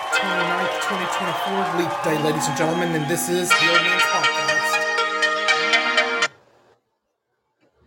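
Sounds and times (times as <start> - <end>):
speech: 0.1 - 4.8
alarm ringtone music: 0.1 - 6.3.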